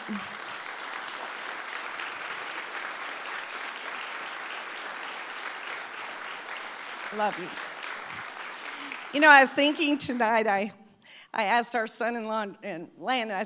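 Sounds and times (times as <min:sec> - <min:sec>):
audience applause: 0:00.0 - 0:10.0
speech: 0:00.1 - 0:00.3, 0:07.1 - 0:07.7, 0:09.1 - 0:13.4.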